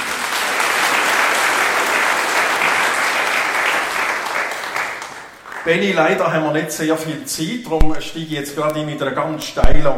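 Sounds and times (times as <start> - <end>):
audience applause: 0.0 - 6.1
speech: 5.6 - 9.9.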